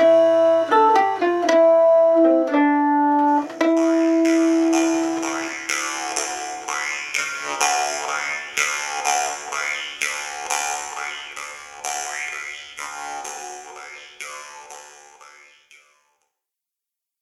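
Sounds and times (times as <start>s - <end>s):
waltz on mandolin: 0.0s - 12.3s.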